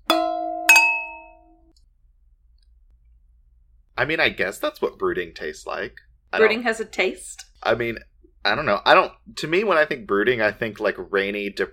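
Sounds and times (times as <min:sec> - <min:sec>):
two glasses clinking in a toast: 0:00.0 - 0:01.5
speech: 0:04.0 - 0:11.7.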